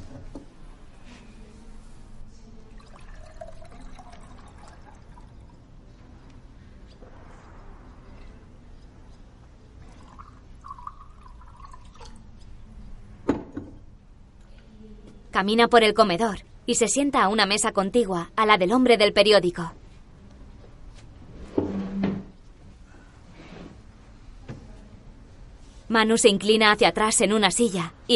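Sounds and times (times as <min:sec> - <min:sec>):
juice being poured into a glass: 0:02.7 - 0:05.7, 0:09.8 - 0:12.4
speech: 0:15.4 - 0:19.8, 0:26.0 - 0:28.1.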